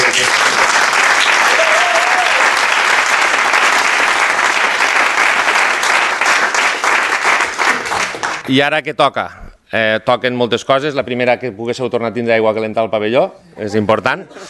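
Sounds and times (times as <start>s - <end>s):
strong applause: 0.0s - 8.5s
speech: 8.5s - 14.4s.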